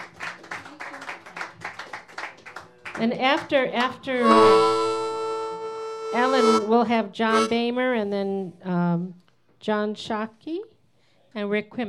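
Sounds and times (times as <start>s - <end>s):
audience applauding between performers at a live show: 0.0s - 3.9s
speech: 3.0s - 4.8s, 6.1s - 10.7s, 11.4s - 11.8s.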